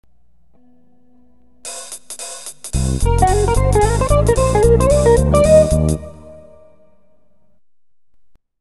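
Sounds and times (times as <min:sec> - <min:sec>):
jazz music: 0:02.7 - 0:06.7.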